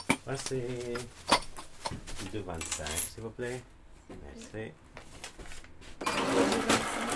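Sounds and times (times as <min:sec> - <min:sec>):
speech: 0:00.3 - 0:05.5
cash register: 0:06.0 - 0:07.1.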